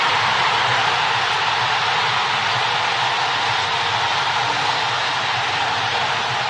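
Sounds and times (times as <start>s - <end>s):
stadium crowd cheering after a goal: 0.0s - 6.4s.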